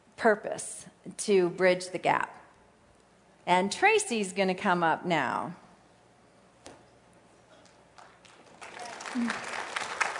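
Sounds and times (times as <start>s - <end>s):
speech: 0.2s - 2.4s, 3.4s - 5.6s, 9.2s - 9.5s
audience applause: 8.0s - 10.1s.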